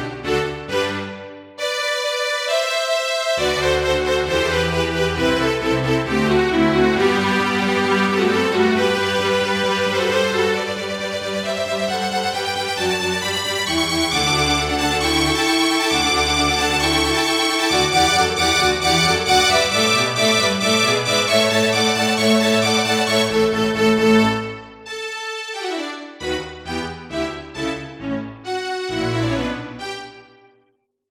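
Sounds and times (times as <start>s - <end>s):
Yamaha DD-55 classical piece: 0.0s - 30.6s.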